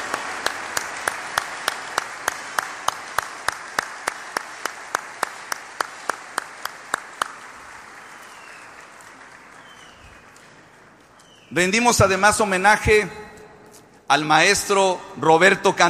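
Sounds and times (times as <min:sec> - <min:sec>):
audience applause: 0:00.0 - 0:11.1
speech: 0:11.5 - 0:13.2, 0:14.1 - 0:15.8.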